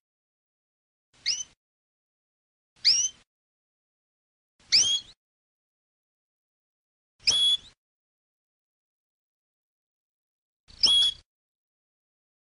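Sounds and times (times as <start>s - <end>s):
canary song with buzzy tour, whistled notes and trills: 1.2s - 1.6s, 2.8s - 3.2s, 4.6s - 5.2s, 7.2s - 7.8s, 10.7s - 11.2s.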